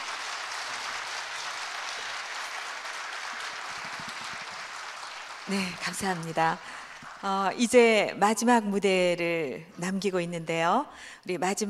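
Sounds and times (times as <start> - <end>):
audience applause: 0.0 - 7.6
speech: 5.5 - 11.6.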